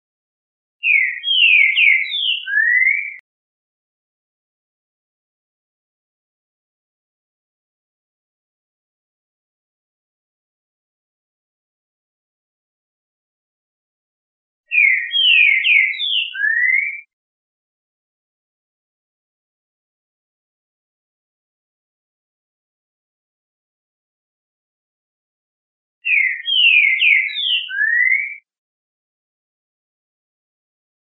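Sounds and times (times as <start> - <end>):
Trinca Ferro bird singing classic song: 0.8 - 3.2, 14.7 - 17.2, 26.0 - 28.5.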